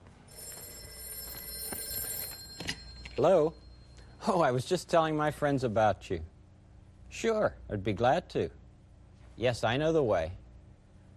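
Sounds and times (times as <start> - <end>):
telephone bell ringing: 0.3 - 4.3
speech: 3.2 - 3.6, 4.2 - 6.3, 7.1 - 8.6, 9.4 - 10.4.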